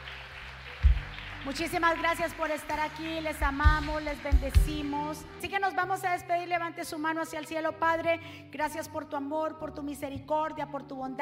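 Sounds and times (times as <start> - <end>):
loud applause from audience: 0.0 - 5.1
speech: 1.4 - 11.1.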